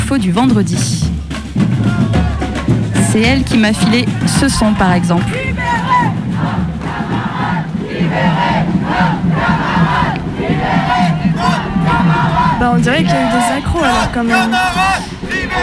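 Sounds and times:
speech: 0.1s - 2.2s, 3.1s - 6.6s, 8.0s - 15.6s
protest crowd shouting and heckling: 1.6s - 15.6s.

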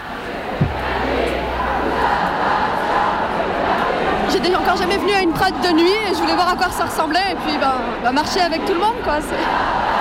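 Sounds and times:
crowd chanting at a night Pride march: 0.0s - 5.7s, 8.2s - 9.9s
low thump: 0.6s - 2.3s
speech: 4.4s - 9.8s.

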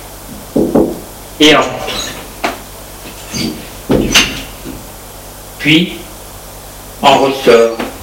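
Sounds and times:
police officer knocking on a door: 0.5s - 1.0s
speech: 1.4s - 2.1s, 5.6s - 6.0s, 7.0s - 7.8s.

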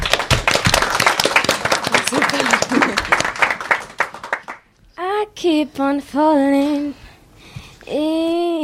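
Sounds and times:
audience applause: 0.0s - 4.6s
speech: 5.4s - 7.0s, 7.9s - 8.5s.

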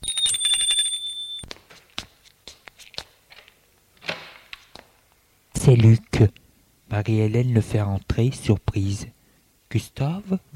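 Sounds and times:
doorbell ringing: 0.0s - 1.5s
speech: 5.7s - 10.5s.

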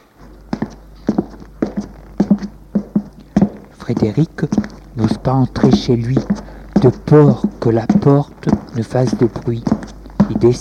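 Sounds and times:
footsteps climbing stairs: 0.0s - 10.5s
speech: 3.9s - 9.7s, 10.3s - 10.5s.

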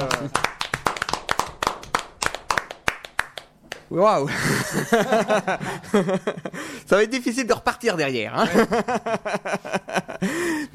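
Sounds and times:
hand clapping: 0.0s - 3.9s
speech: 3.9s - 10.7s
laughter: 4.3s - 6.7s, 8.4s - 10.5s.

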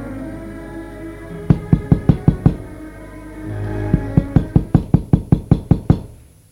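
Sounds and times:
knocking on a door: 1.5s - 2.7s, 3.9s - 6.1s.

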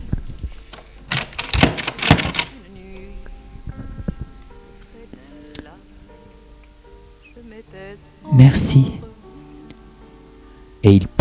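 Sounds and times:
door being opened: 0.0s - 3.3s
quiet steady hum: 0.0s - 11.1s
speech: 8.4s - 9.0s, 10.9s - 11.1s.

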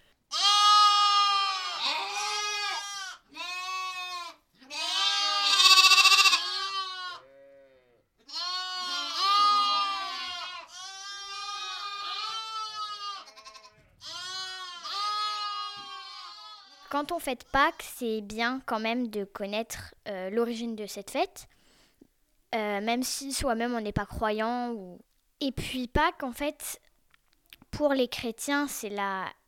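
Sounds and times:
lambs bleating: 0.3s - 16.9s
speech: 16.9s - 21.6s, 22.5s - 26.8s, 27.8s - 29.4s.

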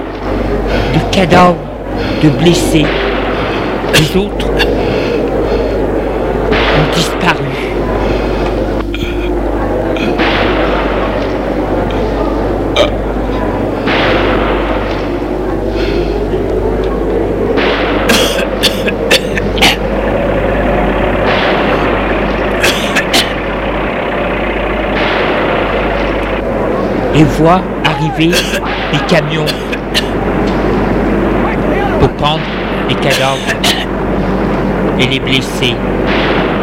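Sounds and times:
heavy low rumble: 0.0s - 36.6s
speech: 1.0s - 3.1s, 3.9s - 4.7s, 27.2s - 30.1s, 32.2s - 34.2s, 35.0s - 36.1s
gunfire: 6.4s - 8.4s, 10.0s - 11.6s, 13.8s - 15.4s, 17.6s - 26.4s, 28.2s - 33.9s, 36.0s - 36.6s.

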